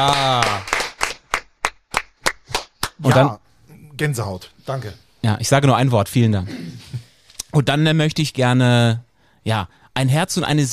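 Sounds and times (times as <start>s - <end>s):
speech: 0.0s - 0.6s, 3.1s - 3.4s, 4.0s - 10.7s
applause: 0.0s - 3.0s.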